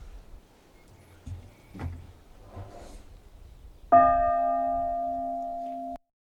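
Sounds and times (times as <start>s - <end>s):
bell ringing: 3.9s - 6.0s.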